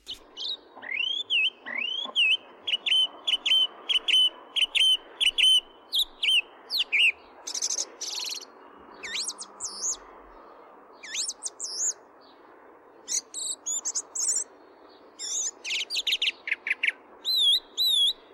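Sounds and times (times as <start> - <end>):
song thrush song: 0.0 - 18.3.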